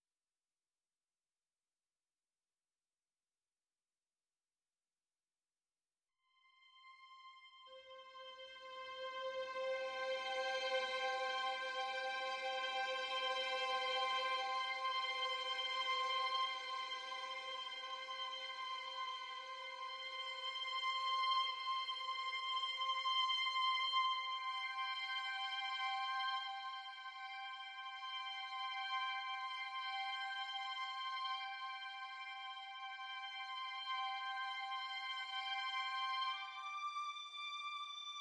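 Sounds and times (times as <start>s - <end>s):
strings: 7.7s - 38.1s.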